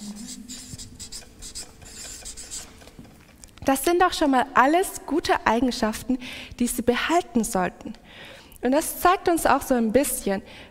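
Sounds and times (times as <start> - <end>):
scratchy strokes of a word being written by hand: 0.0 - 3.2
speech: 3.7 - 8.0, 8.6 - 10.6.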